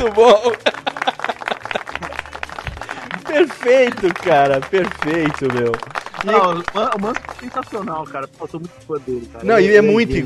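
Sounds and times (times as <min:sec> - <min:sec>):
speech: 0:00.0 - 0:00.7, 0:03.6 - 0:10.2
laughter: 0:00.0 - 0:07.2
applause: 0:00.0 - 0:07.9.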